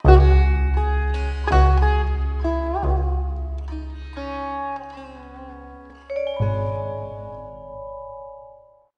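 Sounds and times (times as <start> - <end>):
baritone saxophone: 0.0 - 4.0.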